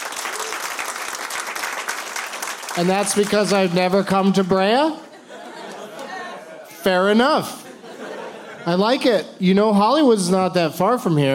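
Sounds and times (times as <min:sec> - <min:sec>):
audience applauding: 0:00.0 - 0:04.4
speech: 0:02.8 - 0:05.0, 0:06.8 - 0:07.6, 0:08.6 - 0:11.3
laughter: 0:04.4 - 0:09.2.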